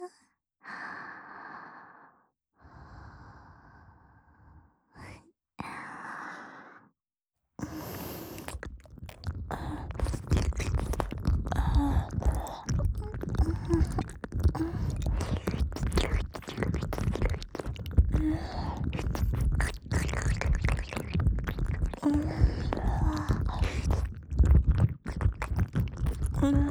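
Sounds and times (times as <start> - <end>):
ASMR ear licking sounds in the left ear: 7.6 - 26.6.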